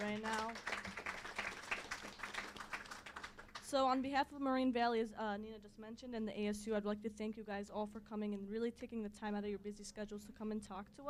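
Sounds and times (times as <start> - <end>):
audience applause: 0.0 - 3.6
speech: 3.7 - 11.0.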